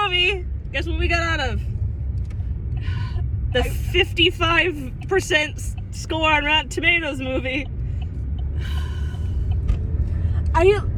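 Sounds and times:
car interior road rumble while driving: 0.0s - 10.9s
speech: 0.1s - 1.7s, 3.5s - 7.8s, 10.6s - 10.9s.

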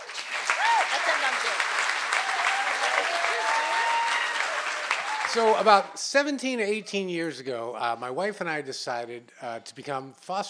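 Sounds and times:
audience applause: 0.0s - 6.0s
whoops and cheers: 0.4s - 1.1s, 2.1s - 5.6s
speech: 5.3s - 10.4s.

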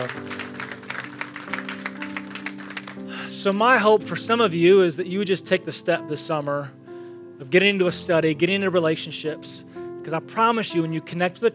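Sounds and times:
speech: 0.0s - 0.5s, 3.4s - 6.8s, 7.4s - 11.5s
audience applause: 0.0s - 3.2s.

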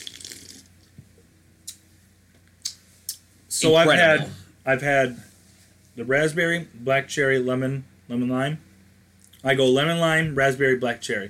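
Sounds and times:
sipping seltzer water: 0.0s - 0.9s
speech: 3.6s - 5.3s, 6.0s - 8.7s, 9.4s - 11.2s.

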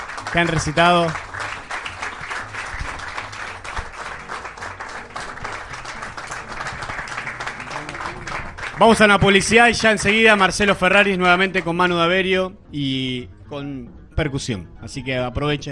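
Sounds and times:
audience applause: 0.0s - 10.5s
speech: 0.3s - 1.3s, 8.8s - 15.7s.

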